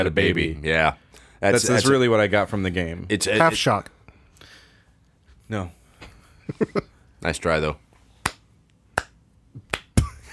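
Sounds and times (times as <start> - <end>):
speech: 0.0 - 4.0, 5.5 - 5.8, 6.5 - 7.8
slow clapping: 9.0 - 10.0.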